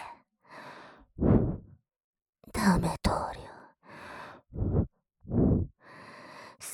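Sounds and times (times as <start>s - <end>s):
blowing into right ear: 1.2s - 1.6s
ear cleaning: 4.6s - 5.7s.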